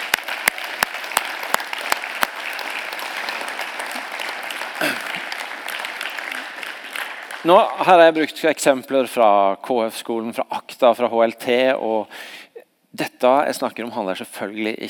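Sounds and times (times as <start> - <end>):
audience applause: 0.0 - 8.2
speech: 7.4 - 12.4, 13.0 - 14.8.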